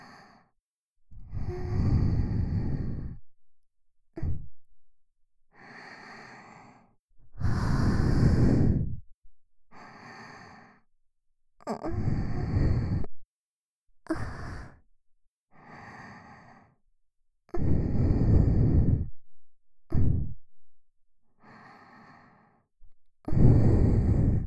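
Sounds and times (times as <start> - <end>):
sweet breathing loop: 0.0 - 0.6, 1.2 - 3.4, 5.5 - 9.1, 9.7 - 10.9, 11.9 - 13.1, 14.1 - 14.9, 15.6 - 16.8, 17.6 - 19.2, 21.4 - 24.4.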